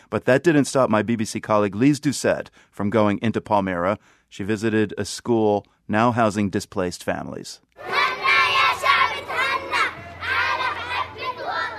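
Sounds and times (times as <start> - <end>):
speech: 0.1 - 8.0
Syrian children shouting and calling out while playing games in a schoolyard: 7.8 - 11.7.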